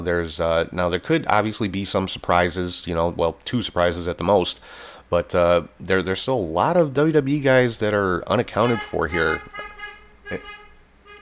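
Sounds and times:
speech: 0.0 - 9.6, 10.3 - 10.6
car horn honking outside: 8.3 - 11.2.

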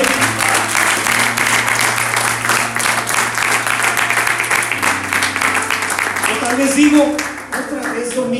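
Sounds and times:
audience applauding loudly: 0.0 - 8.3.

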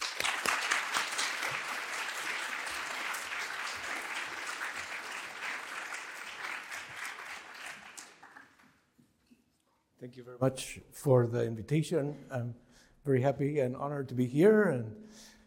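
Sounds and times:
audience applause welcoming a physics lecturer at a college: 0.0 - 8.8
speech: 10.0 - 15.2.

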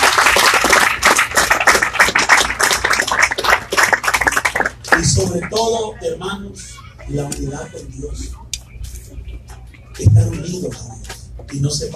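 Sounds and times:
audience clapping: 0.0 - 5.9
speech: 5.1 - 8.4, 10.1 - 10.9, 11.5 - 11.9.

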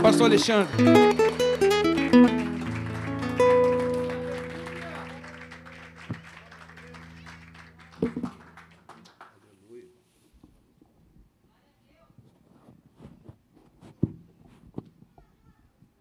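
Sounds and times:
sustained keyboard chords: 0.0 - 8.8
audience applause: 0.0 - 9.6
speech: 0.1 - 1.4.

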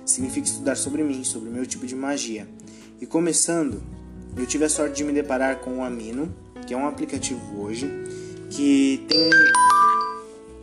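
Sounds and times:
speech: 0.1 - 9.8
mobile phone ringing with electronic melody: 9.1 - 10.4.

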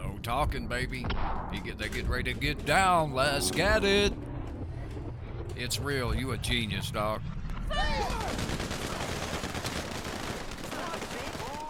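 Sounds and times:
speech: 0.3 - 4.3, 5.6 - 8.7
gunfire in a firefight: 7.9 - 11.6.

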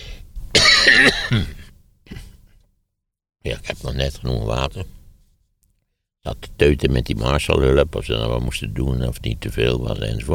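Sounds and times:
person coughing: 0.5 - 2.6
speech: 1.0 - 1.6, 3.4 - 5.0, 6.2 - 10.3.

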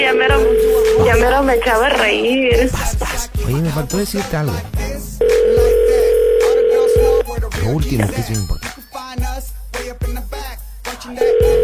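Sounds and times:
phone call ringback tone: 0.0 - 1.6, 5.2 - 7.2, 11.2 - 11.6
speech: 0.2 - 5.7, 7.6 - 8.6
soft low thumps: 0.3 - 1.9.

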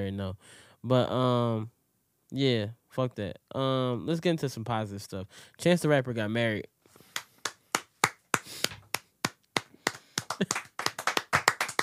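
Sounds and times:
speech: 0.0 - 6.7
hands clapping: 7.0 - 11.8.

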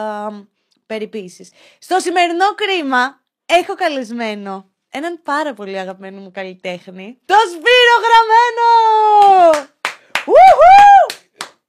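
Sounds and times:
speech: 0.0 - 9.7
one person clapping alone: 9.2 - 11.6.

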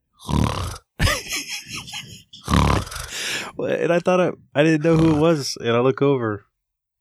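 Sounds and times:
loud rattling snores: 0.2 - 1.0, 2.4 - 3.2, 4.8 - 5.4
laughter: 1.0 - 2.6
speech: 3.6 - 6.5.

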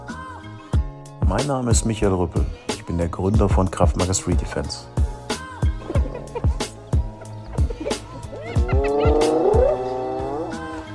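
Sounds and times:
speech: 1.3 - 5.0
laughter: 5.8 - 10.2
hyena screaming: 8.2 - 10.4.

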